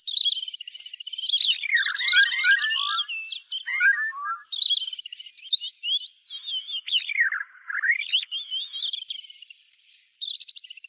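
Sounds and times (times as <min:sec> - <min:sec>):
European robin singing: 0:00.0 - 0:10.8.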